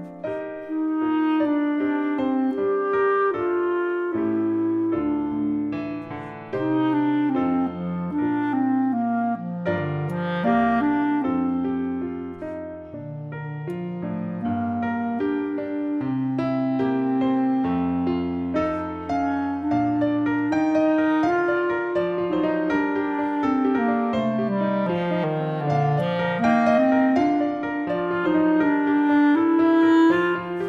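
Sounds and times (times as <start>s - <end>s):
full clarinet piece: 0.0s - 30.6s.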